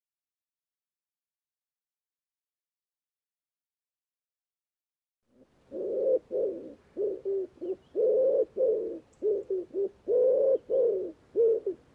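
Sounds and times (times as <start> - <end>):
bird cooing in low notes: 5.3 - 11.9.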